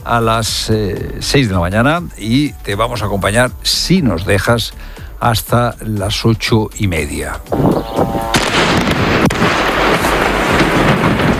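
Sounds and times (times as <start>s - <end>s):
speech: 0.0s - 10.2s
blasts of bombs dropped by Israel falling on Lebanon: 7.4s - 11.3s
continuous rumble and crackle of bombing on Lebanon: 7.6s - 11.3s.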